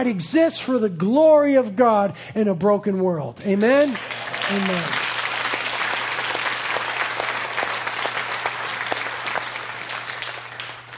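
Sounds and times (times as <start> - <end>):
speech: 0.0 - 5.1
audience clapping: 3.4 - 10.9.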